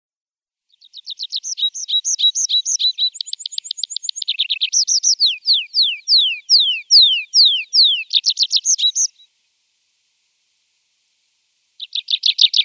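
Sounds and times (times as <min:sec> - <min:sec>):
tree pipit singing looping notes, trills, rattle and downward slurs: 0:00.7 - 0:09.3, 0:11.8 - 0:12.6.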